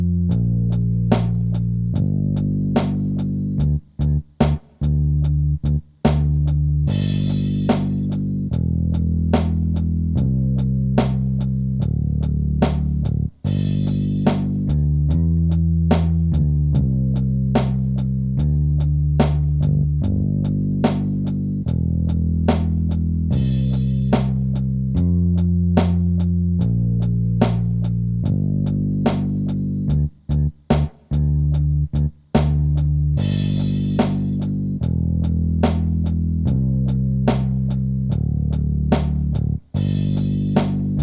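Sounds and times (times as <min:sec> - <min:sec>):
bass: 0:00.0 - 0:41.0
drums: 0:00.0 - 0:41.0.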